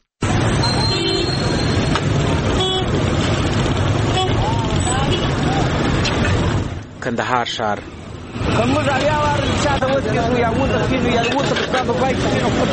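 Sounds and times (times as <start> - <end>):
engine rumble and road noise of congested city traffic in Kandahar: 0.2 - 12.7
car horns honking in Kandahar street traffic: 0.6 - 3.0, 4.0 - 5.4
speech: 7.1 - 12.7.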